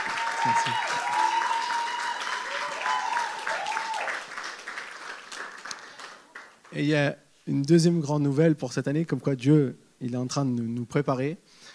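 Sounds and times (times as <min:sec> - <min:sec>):
audience applause: 0:00.0 - 0:06.8
speech: 0:00.4 - 0:01.0, 0:06.7 - 0:11.6.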